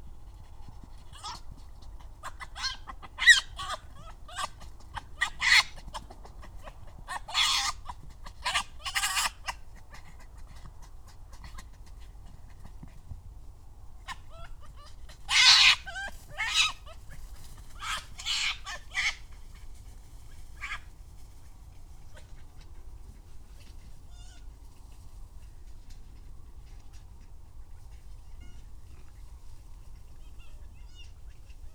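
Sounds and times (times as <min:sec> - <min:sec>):
red fox Vulpes vulpes: 0:00.0 - 0:13.0, 0:14.0 - 0:24.6, 0:29.9 - 0:31.7.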